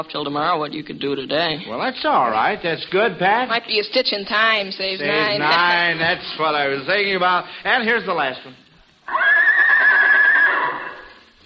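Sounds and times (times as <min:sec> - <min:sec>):
speech: 0:00.0 - 0:09.2
horse neighing: 0:09.1 - 0:11.3.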